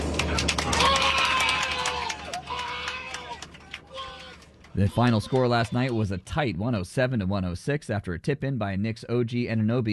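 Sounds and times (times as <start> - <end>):
passengers celebrating on board a plane: 0.0 - 6.6
speech: 4.8 - 9.9.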